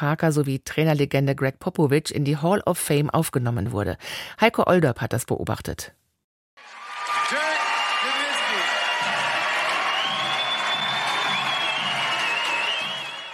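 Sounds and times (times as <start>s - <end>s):
speech: 0.0s - 6.0s
large indoor crowd applauding in concert hall: 6.6s - 13.3s
shouts, whistles and whoops from audience: 6.8s - 13.3s.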